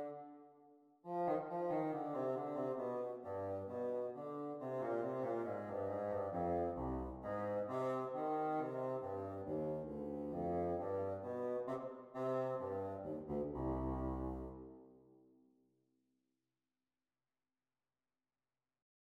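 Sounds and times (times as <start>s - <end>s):
bassoon duet practice: 0.0s - 0.3s, 1.1s - 14.7s.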